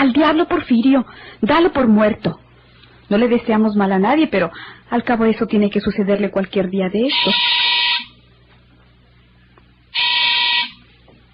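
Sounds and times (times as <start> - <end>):
speech: 0.0 - 2.4, 3.1 - 7.6
street doorbell buzzer ringing: 7.1 - 8.2, 9.9 - 10.9.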